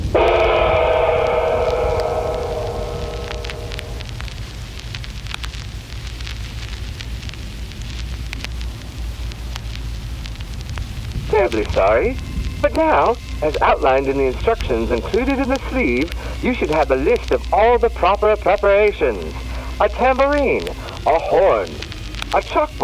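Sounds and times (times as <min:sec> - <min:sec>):
gong: 0:00.1 - 0:04.5
speech: 0:11.5 - 0:22.8.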